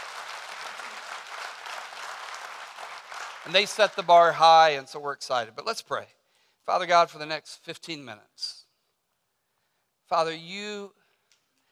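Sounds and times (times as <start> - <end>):
audience hand clapping: 0.0 - 4.4
speech: 3.4 - 8.6, 10.1 - 11.0.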